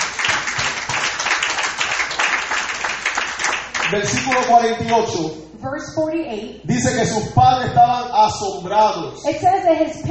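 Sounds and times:
audience applauding: 0.0s - 5.0s
speech: 3.9s - 10.1s.

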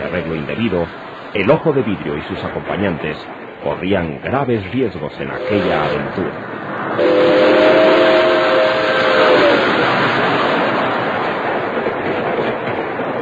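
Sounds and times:
train rumbling on rails: 0.0s - 13.2s
speech: 0.1s - 7.4s
shrill train whistle: 5.4s - 6.0s, 7.0s - 9.8s.

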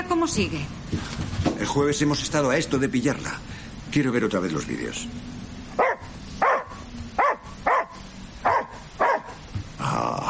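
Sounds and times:
speech: 0.1s - 5.9s
dog giving short high whiny barks: 5.8s - 9.5s.

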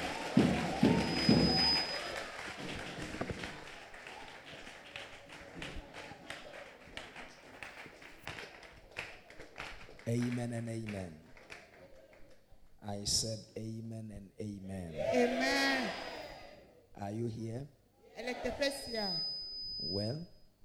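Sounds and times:
audience clapping: 0.0s - 12.5s
speech: 10.1s - 11.2s, 12.9s - 16.1s, 17.0s - 20.4s.

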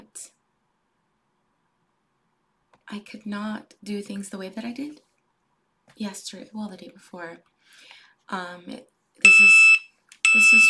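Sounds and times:
speech: 2.9s - 5.1s, 6.0s - 9.6s, 10.3s - 10.6s
phone alert ringing despite silent mode: 9.2s - 10.6s.

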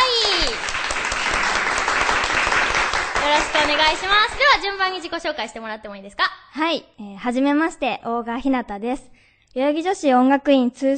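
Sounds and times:
audience applause welcoming guests: 0.0s - 5.0s
speech: 3.7s - 10.9s.

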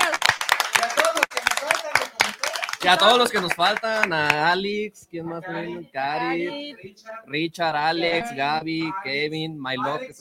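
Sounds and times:
clapping applause: 0.0s - 4.4s
speech: 2.8s - 10.1s.

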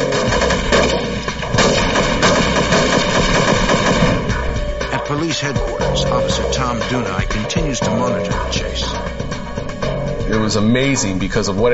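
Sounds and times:
gunfire exchanged between gang and police sniper: 0.0s - 4.7s
speech: 5.4s - 9.2s, 10.3s - 11.7s.

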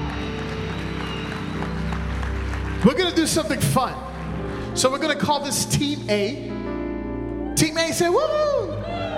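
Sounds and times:
audience clapping: 0.0s - 5.2s
speech: 2.8s - 4.1s, 4.8s - 6.6s, 7.6s - 9.0s.

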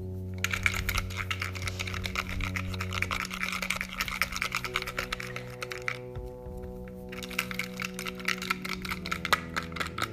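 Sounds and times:
low hum: 0.0s - 10.1s
paper slips shaken inside a closed box: 0.4s - 6.2s, 7.0s - 10.1s.

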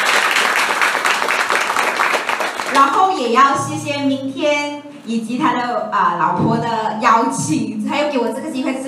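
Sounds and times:
applause: 0.0s - 3.2s
speech: 2.8s - 8.8s.

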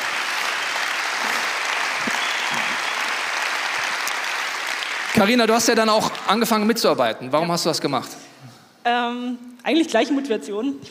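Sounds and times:
audience applause: 0.0s - 6.7s
speech: 5.2s - 8.2s, 8.8s - 10.8s.

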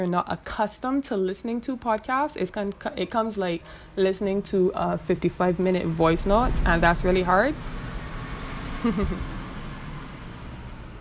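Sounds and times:
speech: 0.0s - 7.8s, 8.8s - 9.3s
car passing by outside: 5.8s - 11.0s.

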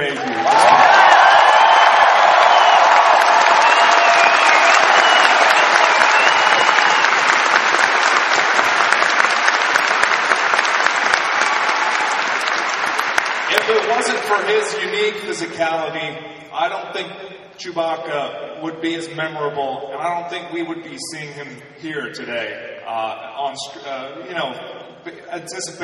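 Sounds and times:
audience clapping at a fan convention: 0.0s - 15.3s
audience whoops and shouts: 0.3s - 7.2s
speech: 15.4s - 25.8s.

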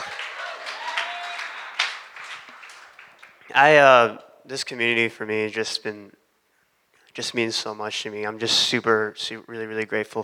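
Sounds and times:
audience applause and clapping: 0.0s - 3.5s
speech: 3.5s - 6.2s, 7.2s - 10.2s.

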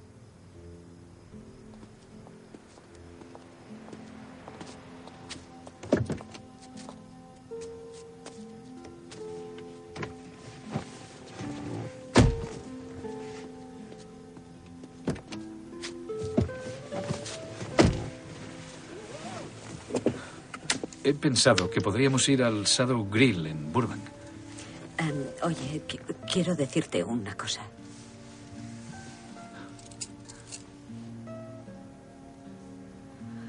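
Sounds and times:
soft shuffling and rustling of people climbing in: 1.8s - 21.1s, 27.8s - 30.8s
car doors thumping shut as people get in: 5.8s - 6.4s, 10.0s - 12.7s, 16.2s - 18.2s
speech: 21.1s - 24.0s, 25.8s - 27.8s.

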